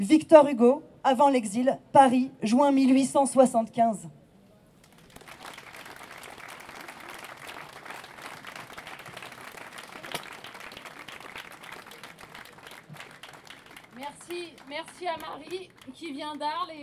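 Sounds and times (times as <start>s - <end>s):
speech: 0.0s - 4.2s, 14.8s - 16.8s
audience applause: 4.8s - 16.4s.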